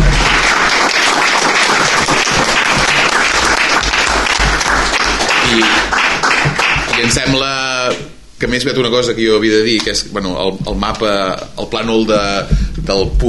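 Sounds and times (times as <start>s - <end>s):
audience applause: 0.0s - 7.5s
speech: 7.0s - 13.2s.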